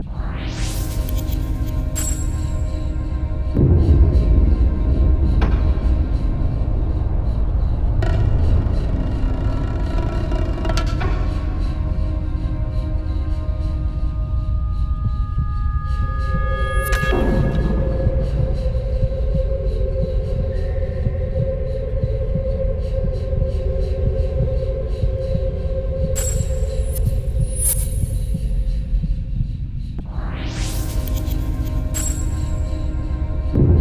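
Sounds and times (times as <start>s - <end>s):
ambient music: 0.0s - 33.8s.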